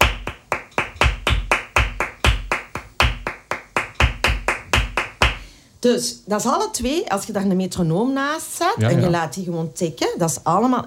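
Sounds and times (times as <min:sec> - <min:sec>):
flamenco bulerías rhythm hand clapping: 0:00.0 - 0:05.5
speech: 0:05.8 - 0:10.8.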